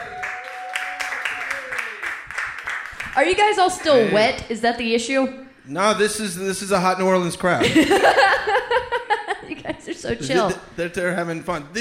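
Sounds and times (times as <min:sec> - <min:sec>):
audience clapping: 0:00.0 - 0:04.1
high cheer or whoop: 0:00.0 - 0:04.2
speech: 0:03.2 - 0:09.0, 0:09.8 - 0:11.8
laughter: 0:07.6 - 0:10.7.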